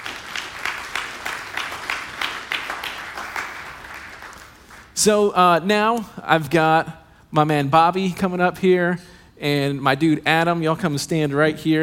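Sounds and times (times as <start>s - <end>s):
crowd applause: 0.0s - 4.9s
speech: 5.0s - 11.8s.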